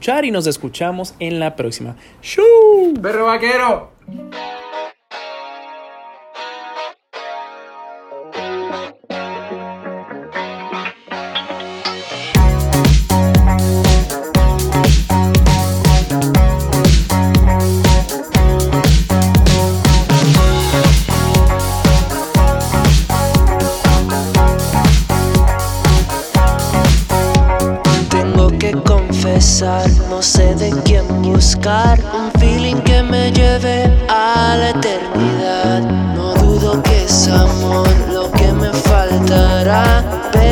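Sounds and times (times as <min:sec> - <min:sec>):
speech: 0:00.0 - 0:04.6
sparse effects-heavy electric guitar figure: 0:04.0 - 0:40.5
rock band with drums, bass and distorted guitars playing: 0:08.3 - 0:29.6, 0:36.4 - 0:40.5.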